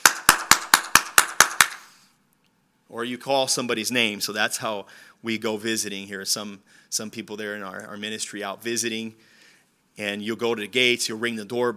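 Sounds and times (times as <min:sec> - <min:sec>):
hand claps at a closed house gate to call someone: 0:00.0 - 0:01.9
speech: 0:02.9 - 0:09.3, 0:10.0 - 0:11.7.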